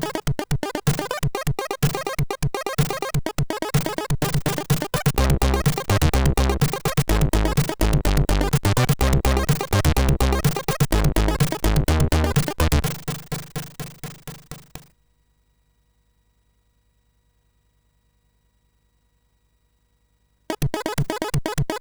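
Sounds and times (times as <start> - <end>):
tune on MOS6581R3 chip: 0.0 - 14.9, 20.5 - 21.7.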